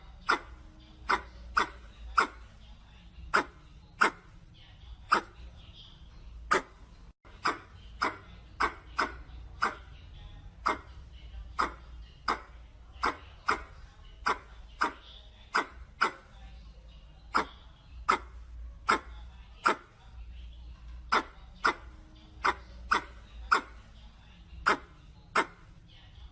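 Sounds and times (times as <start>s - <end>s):
red squirrel chuck calls: 0.1s - 2.6s, 3.3s - 4.3s, 7.3s - 9.9s, 11.6s - 16.3s, 17.3s - 19.9s, 21.1s - 23.9s, 24.6s - 25.6s.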